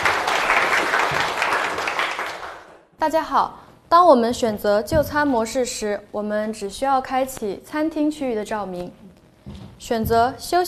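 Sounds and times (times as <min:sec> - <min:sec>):
classroom audience applause: 0:00.0 - 0:02.8
speech: 0:03.1 - 0:09.1, 0:09.8 - 0:10.6.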